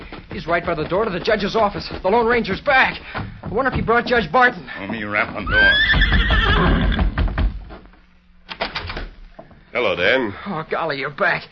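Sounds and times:
speech: 0.4s - 7.0s, 9.8s - 11.5s
horse neighing: 5.3s - 7.2s.

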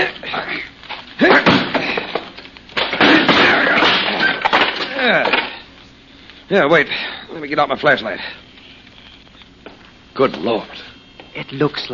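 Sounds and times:
locked wooden door being forced open: 1.3s - 2.2s, 2.8s - 5.5s
speech: 6.5s - 8.4s, 10.2s - 11.9s.

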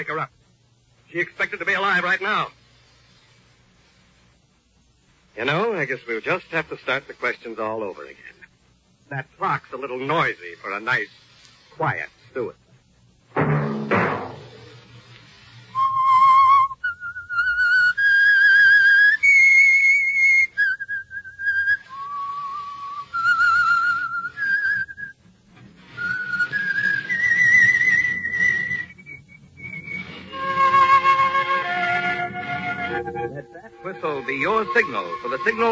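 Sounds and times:
speech: 0.0s - 0.4s, 1.1s - 2.6s, 5.4s - 8.4s, 9.1s - 11.2s, 11.8s - 12.6s, 34.4s - 35.6s
dull thump: 13.3s - 15.0s
whistled theme melody: 15.7s - 25.2s, 26.0s - 35.6s.

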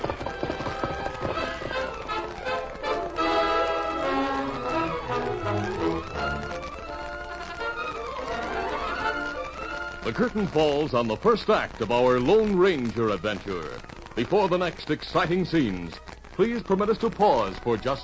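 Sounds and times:
galloping hooves of the Lone Ranger's horse Silver: 0.0s - 18.0s
dramatic chase music: 3.2s - 7.6s
speech: 10.1s - 18.0s.

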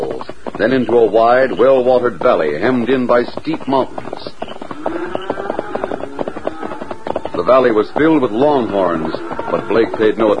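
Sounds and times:
horse galloping hoofbeats: 0.0s - 10.3s
speech: 0.6s - 5.2s, 7.4s - 10.3s.

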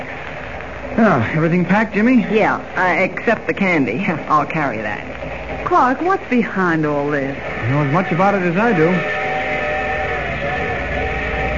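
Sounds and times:
speech: 1.0s - 9.2s
train station whistle: 7.5s - 11.5s.

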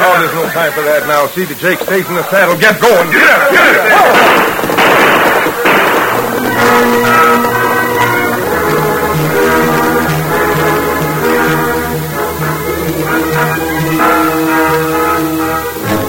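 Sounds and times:
laughter: 0.0s - 15.9s
speech: 0.2s - 5.7s
gunshot: 4.0s - 8.2s.

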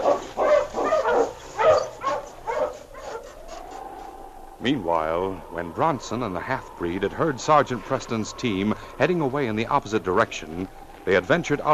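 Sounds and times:
husky barking and yelping: 0.0s - 4.6s
speech: 4.7s - 11.7s.

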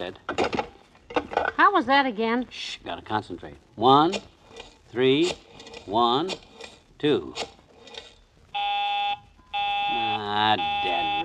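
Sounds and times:
speech: 0.0s - 0.6s, 1.6s - 4.3s, 4.9s - 7.6s, 10.3s - 11.2s
telephone busy signal: 8.6s - 11.2s.

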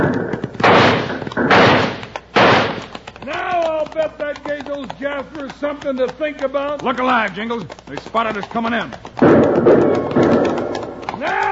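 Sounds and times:
six-gun revolver shots in a Western shootout: 0.0s - 2.9s
smaller sharp cracks: 0.0s - 11.5s
speech: 4.8s - 10.2s.

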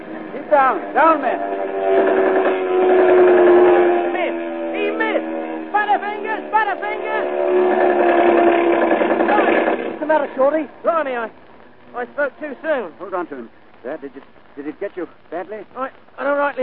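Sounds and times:
rising and falling wails: 0.0s - 10.4s
dive bomber plane engines whining: 0.0s - 13.0s
speech: 0.5s - 2.5s, 10.1s - 16.6s.

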